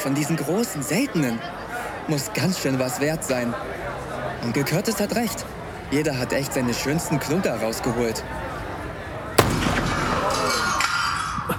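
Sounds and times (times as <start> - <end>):
speech: 0.0 - 8.5
noisy crowd-like background: 0.0 - 11.5
gunshot shattering a glass display case: 9.4 - 11.0.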